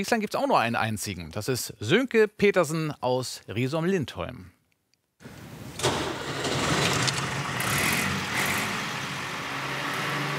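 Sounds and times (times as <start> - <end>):
speech: 0.0 - 4.6
vintage tractor engine starting and running: 5.7 - 9.7.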